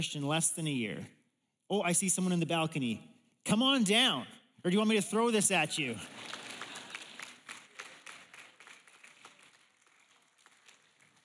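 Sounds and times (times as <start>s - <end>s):
speech: 0.0s - 6.4s
audience clapping: 5.9s - 11.2s.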